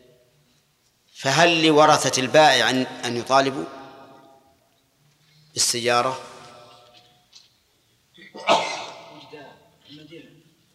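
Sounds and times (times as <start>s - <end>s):
speech: 1.2s - 3.8s, 5.6s - 6.3s
sneeze: 8.4s - 9.2s.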